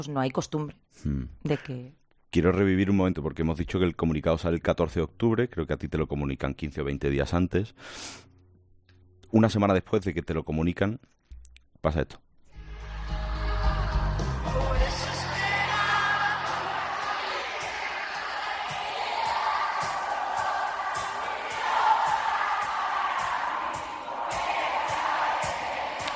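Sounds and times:
speech: 0.0 - 8.3, 9.3 - 11.2, 11.8 - 12.2
concert audience singing along in chorus: 12.8 - 26.1.

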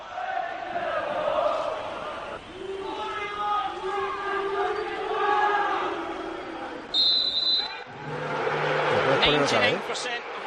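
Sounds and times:
large crowd of football fans chanting: 0.0 - 7.0, 7.6 - 10.4
crowd booing: 0.0 - 10.4
high whistle-like tone: 6.9 - 7.9.

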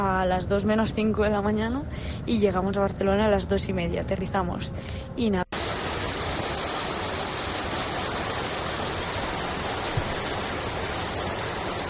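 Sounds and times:
speech: 0.0 - 5.4
water of the Desmercadal torrent: 5.6 - 11.8.

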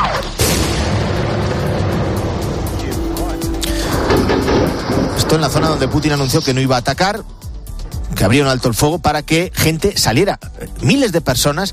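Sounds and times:
bombing boom on humanitarian corridors during civilian evacuation: 0.0 - 6.8
speech: 5.3 - 7.4, 8.2 - 11.7.

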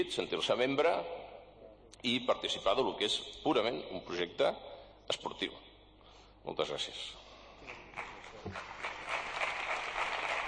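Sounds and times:
speech: 0.0 - 1.2, 2.0 - 5.7, 6.4 - 8.7
audience applause after a speech at a sports club meeting: 7.9 - 10.4.

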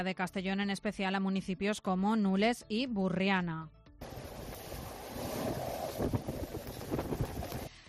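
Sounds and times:
speech: 0.0 - 4.2, 6.0 - 6.4
strong storm wind gusting at up to 119 km/h in Nules, Castellón: 4.0 - 7.7.

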